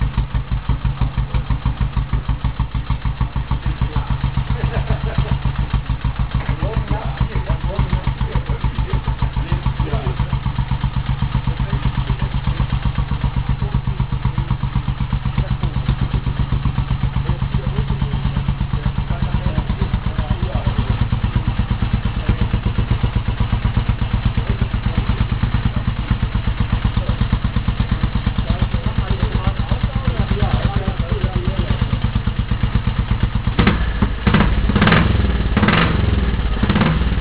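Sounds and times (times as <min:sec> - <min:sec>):
Royal Enfield motorcycle engine: 0:00.0 - 0:37.1
laughter: 0:04.1 - 0:05.9, 0:06.8 - 0:10.3.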